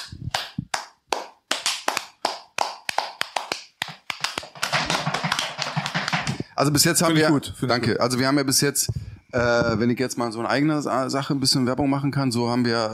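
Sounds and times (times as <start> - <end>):
small group clapping: 0.0 - 6.4
speech: 6.6 - 12.9.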